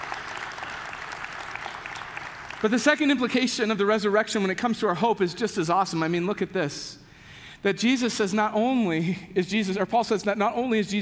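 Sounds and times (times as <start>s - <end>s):
audience clapping: 0.0s - 3.5s
speech: 2.6s - 7.0s, 7.6s - 10.9s.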